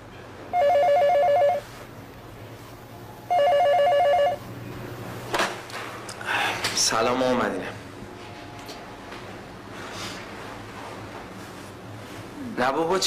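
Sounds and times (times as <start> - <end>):
telephone ringing with electronic trill: 0.5 - 1.7, 3.3 - 4.5
speech: 6.9 - 7.8, 12.6 - 13.0.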